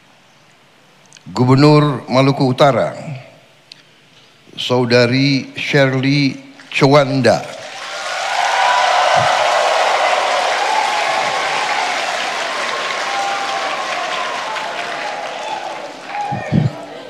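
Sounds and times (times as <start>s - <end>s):
speech: 1.2s - 3.2s, 4.6s - 7.6s
audience applause at an official ceremony for the Governor of North Maluku: 7.4s - 17.0s.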